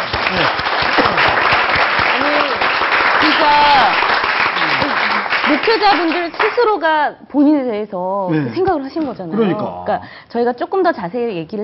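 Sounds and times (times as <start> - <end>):
audience applause: 0.0 - 6.8
speech: 5.6 - 11.6.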